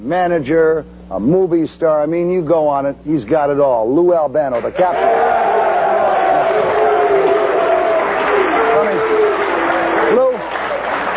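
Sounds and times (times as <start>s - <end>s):
speech: 0.0s - 5.5s
crowd applause: 4.8s - 11.1s.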